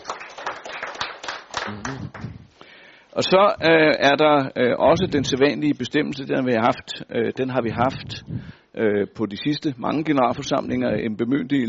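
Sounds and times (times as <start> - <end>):
group of people applauding to approve a proposal: 0.0 - 2.4
speech: 1.7 - 11.6.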